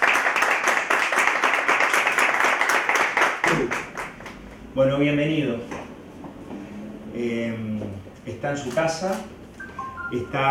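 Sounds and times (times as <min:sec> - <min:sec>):
audience applause: 0:00.0 - 0:04.4
speech: 0:04.8 - 0:05.8, 0:07.2 - 0:09.3, 0:10.1 - 0:10.4.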